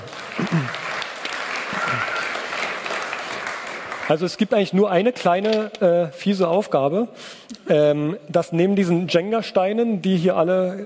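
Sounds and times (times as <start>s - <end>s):
audience applause: 0.0s - 4.5s
speech: 4.1s - 10.8s.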